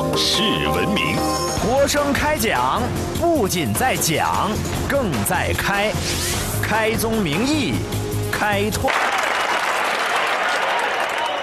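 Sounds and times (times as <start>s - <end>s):
speech: 0.2s - 9.1s
audience applause: 8.9s - 11.4s.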